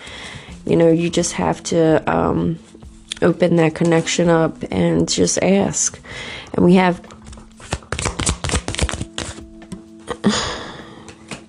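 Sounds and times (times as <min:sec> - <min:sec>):
speech: 0:00.6 - 0:07.1
spiritual card deck cards flicking: 0:07.2 - 0:09.4.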